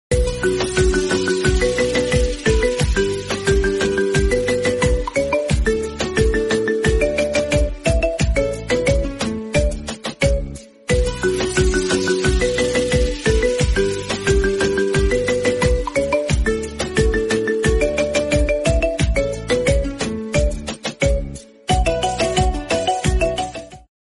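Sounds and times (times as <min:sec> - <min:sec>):
ringtone melody: 0:00.1 - 0:23.9.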